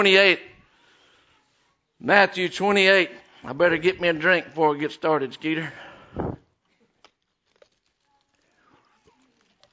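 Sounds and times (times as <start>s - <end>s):
speech: 0.0s - 0.5s, 2.0s - 6.4s
Bible pages turning: 6.8s - 9.7s.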